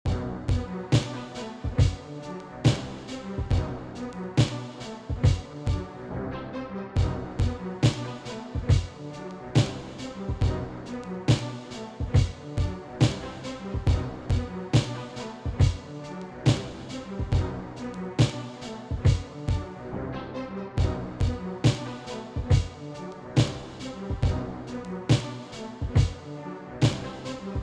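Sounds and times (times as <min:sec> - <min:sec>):
granulated hip-hop music: 0:00.1 - 0:05.9, 0:07.0 - 0:19.7, 0:20.8 - 0:27.6.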